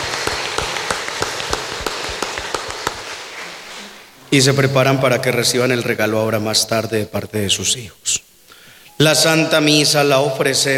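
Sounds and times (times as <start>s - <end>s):
audience applauding: 0.0s - 4.0s
speech: 4.3s - 8.3s, 9.0s - 10.7s.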